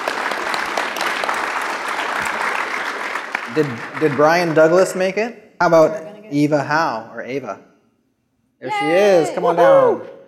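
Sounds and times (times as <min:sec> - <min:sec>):
audience applause at a live session of JavaScript lightning talks: 0:00.0 - 0:04.9
speech: 0:03.6 - 0:07.7, 0:08.6 - 0:10.2.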